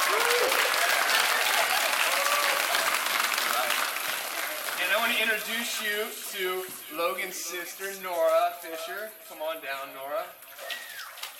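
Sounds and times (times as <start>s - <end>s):
congregation applauding after a baptism at a church service: 0.0s - 5.5s
speech: 5.4s - 10.4s.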